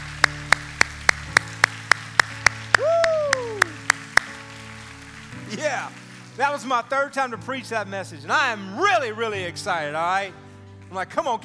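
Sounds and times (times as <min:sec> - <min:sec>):
applause: 0:00.0 - 0:07.4, 0:10.7 - 0:11.4
speech: 0:05.6 - 0:11.4.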